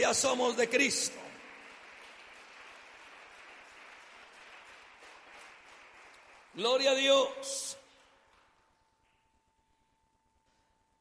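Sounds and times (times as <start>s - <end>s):
speech: 0.0s - 1.4s, 6.6s - 7.8s
audience applause: 0.7s - 7.1s.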